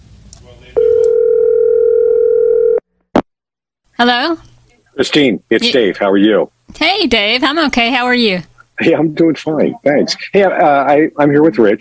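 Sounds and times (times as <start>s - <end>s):
telephone dial tone: 0.8s - 2.8s
speech: 4.0s - 11.7s.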